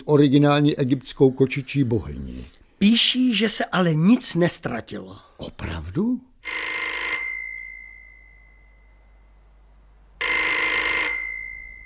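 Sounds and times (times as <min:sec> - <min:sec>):
speech: 0:00.0 - 0:07.0
telephone ringing: 0:06.4 - 0:11.8.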